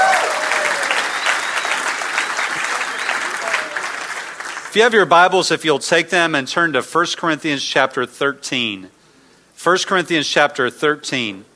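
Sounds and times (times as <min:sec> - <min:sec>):
person clapping: 0:00.0 - 0:04.7
speech: 0:04.7 - 0:09.0, 0:09.6 - 0:11.5.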